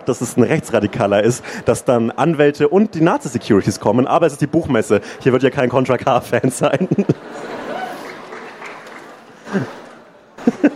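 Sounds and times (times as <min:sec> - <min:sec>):
speech: 0:00.0 - 0:07.6, 0:09.5 - 0:09.8
laughter: 0:06.2 - 0:10.7
sparse muted audience clapping: 0:07.4 - 0:10.0.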